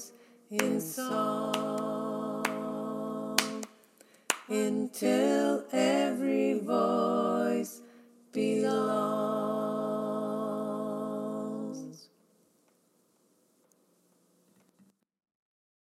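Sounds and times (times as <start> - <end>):
choir singing all parts: 0.0 - 3.8, 4.4 - 12.1.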